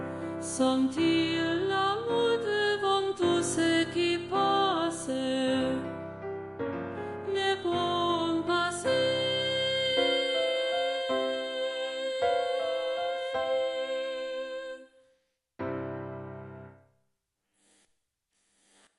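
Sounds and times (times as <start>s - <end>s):
soprano singing: 0.0s - 6.4s, 7.1s - 15.0s.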